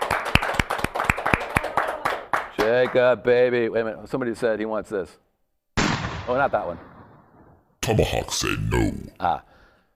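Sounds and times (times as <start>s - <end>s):
faint scattered applause: 0.0s - 3.0s
steady sharp hand clapping: 0.0s - 3.0s
speech: 2.7s - 5.2s, 6.3s - 6.9s, 7.9s - 9.5s
murmuring: 7.8s - 9.3s.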